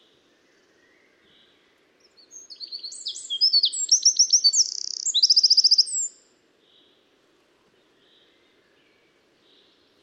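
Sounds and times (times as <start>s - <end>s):
Eurasian wren singing: 2.3s - 6.2s.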